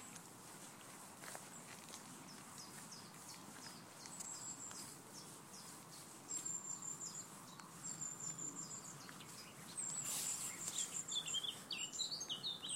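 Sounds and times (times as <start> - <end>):
nature sounds: 0.0 - 12.7.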